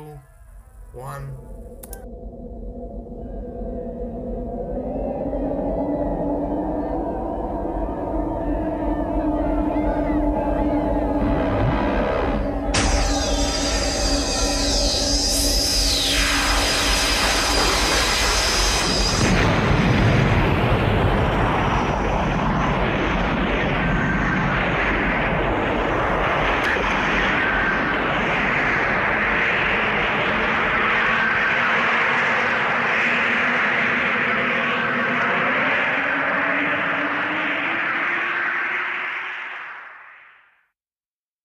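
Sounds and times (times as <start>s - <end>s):
whining tones sweeping downward: 0.0s - 40.6s
speech: 0.9s - 2.2s
heavy rumbling explosions and crackling blasts: 9.0s - 39.5s
rocket launch roar sound effect: 9.2s - 40.6s.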